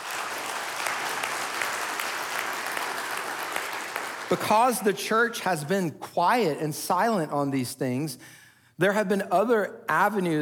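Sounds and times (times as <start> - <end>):
audience cheering and applauding: 0.0 - 4.4
speech: 4.3 - 10.4.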